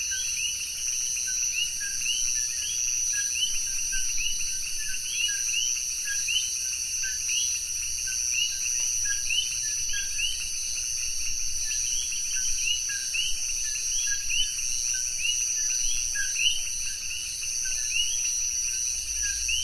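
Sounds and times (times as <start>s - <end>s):
coqui frog calling at night at the edge of the woods: 0.1s - 19.6s.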